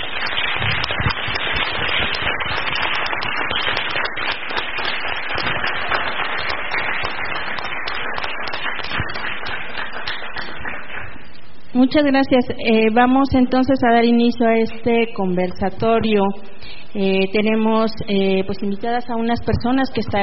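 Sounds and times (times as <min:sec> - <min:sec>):
audience applause: 0:00.0 - 0:11.2
speech: 0:11.8 - 0:20.2.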